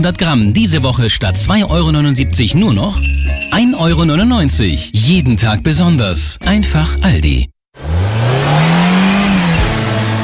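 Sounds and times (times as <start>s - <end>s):
speech: 0.0s - 7.5s
car engine revving: 7.8s - 10.2s.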